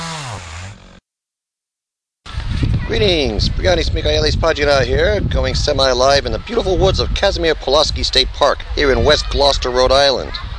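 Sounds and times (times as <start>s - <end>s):
chainsaw engine running in the woods of Casimir Pulaski State Park, Rhode Island: 0.0s - 1.0s
speech: 2.9s - 10.5s.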